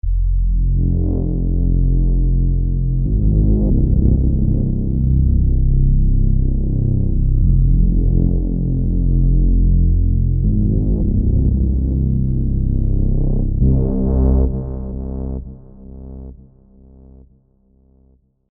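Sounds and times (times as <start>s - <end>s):
drone: 0.0s - 17.0s.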